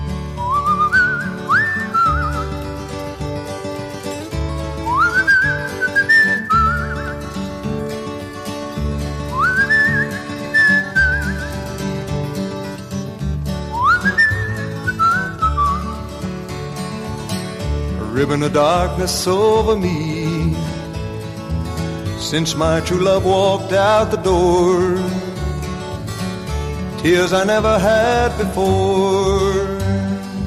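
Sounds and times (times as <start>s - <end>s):
bass accompaniment: 0.0s - 30.4s
steady strummed guitar: 0.0s - 30.4s
whistled melody intro of a 1960s country song recording: 0.3s - 2.9s, 4.7s - 7.5s, 9.2s - 12.2s, 13.6s - 16.2s
speech: 18.3s - 20.2s, 22.3s - 25.2s, 27.0s - 29.5s.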